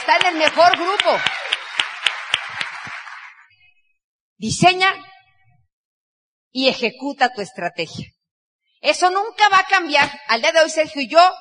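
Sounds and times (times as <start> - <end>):
audience applause: 0.0 - 3.5
speech: 0.1 - 1.6, 4.4 - 5.1, 6.5 - 8.2, 8.8 - 11.3.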